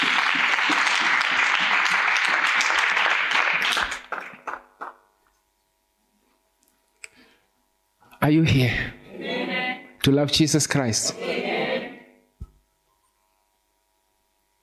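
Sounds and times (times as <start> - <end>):
audience clapping hands: 0.0 - 5.1
speech: 8.3 - 9.0, 10.0 - 11.5.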